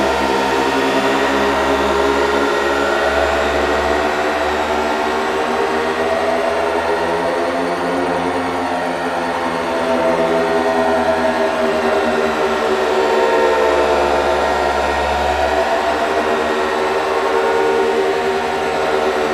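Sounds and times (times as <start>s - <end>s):
giant sci-fi turbine fan: 0.0s - 19.3s.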